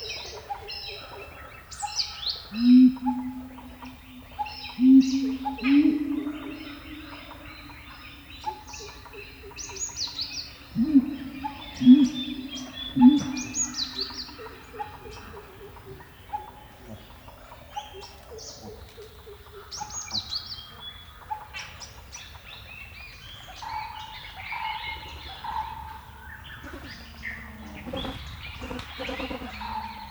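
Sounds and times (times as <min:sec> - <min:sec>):
Indian woodland birdsong: 0:00.0 - 0:30.0.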